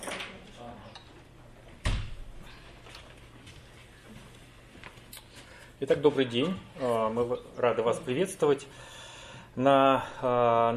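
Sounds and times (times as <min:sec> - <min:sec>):
low steady noise: 0:00.0 - 0:10.7
door pushed shut: 0:01.8 - 0:02.3
speech: 0:05.8 - 0:08.9, 0:09.6 - 0:10.7.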